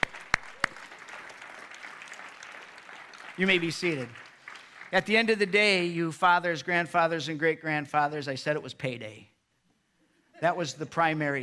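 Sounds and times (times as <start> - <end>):
hand claps from a gathered audience: 0.0 - 5.3
faint hiss: 2.6 - 11.4
speech: 3.4 - 4.3, 4.9 - 9.3, 10.4 - 11.4.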